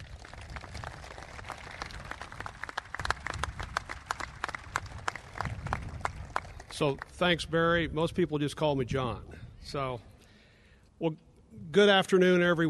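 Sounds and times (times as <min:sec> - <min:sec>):
audience applause: 0:00.0 - 0:07.0
speech: 0:06.8 - 0:10.1, 0:11.0 - 0:12.6.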